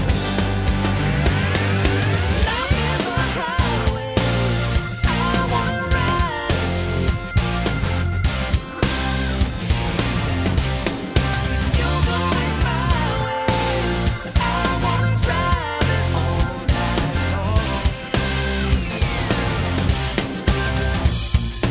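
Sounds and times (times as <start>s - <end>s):
karaoke singing: 0.1s - 21.5s.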